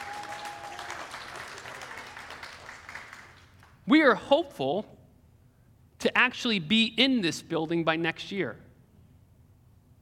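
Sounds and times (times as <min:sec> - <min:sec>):
audience clapping: 0:00.0 - 0:03.8
speech: 0:03.9 - 0:05.0, 0:06.1 - 0:08.6.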